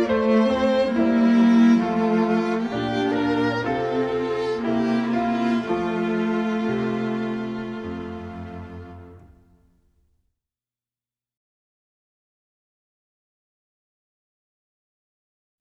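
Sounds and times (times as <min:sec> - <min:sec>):
music: 0:00.0 - 0:10.2.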